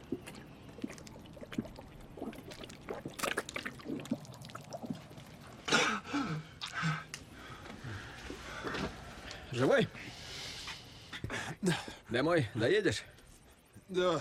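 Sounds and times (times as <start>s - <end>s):
water poured for a man, sloshing and splashing: 0.0s - 5.7s
man gulping and slurping water: 0.0s - 7.1s
speech: 9.6s - 10.1s, 11.6s - 13.2s, 13.9s - 14.1s.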